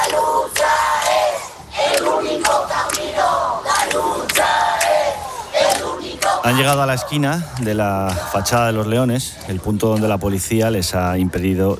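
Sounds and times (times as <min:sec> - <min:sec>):
protest crowd chanting at camp: 0:00.0 - 0:09.1
speech: 0:06.4 - 0:11.7.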